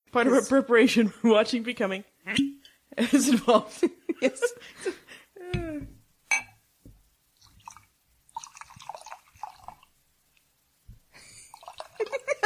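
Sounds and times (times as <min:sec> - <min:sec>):
speech: 0:00.1 - 0:05.0
glass clinks: 0:06.3 - 0:06.6
scotch glugging out of a bottle into a glass: 0:07.4 - 0:09.9, 0:11.5 - 0:12.3.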